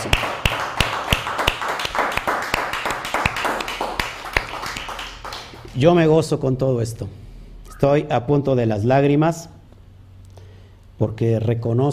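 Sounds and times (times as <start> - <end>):
crowd applauding: 0.0 - 5.9
sharp louder claps in a quick even rhythm: 0.0 - 5.9
speech: 5.8 - 7.2, 7.8 - 9.6, 11.0 - 11.9.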